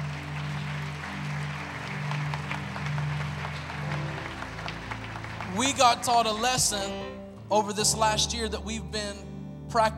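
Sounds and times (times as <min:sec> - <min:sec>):
audience clapping: 0:00.0 - 0:07.0
low sustained organ or keyboard tones: 0:00.0 - 0:09.9
speech: 0:05.6 - 0:09.9.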